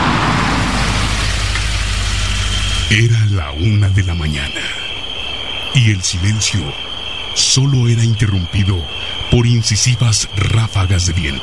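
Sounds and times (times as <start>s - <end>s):
car engine rumbling while pulling over at the entrance of a curve: 0.0s - 5.0s
road noise: 0.0s - 11.4s
speech: 2.9s - 4.8s, 5.7s - 11.4s.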